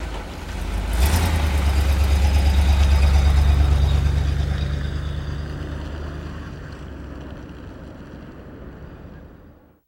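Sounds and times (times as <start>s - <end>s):
English taxi idling: 0.0s - 8.8s.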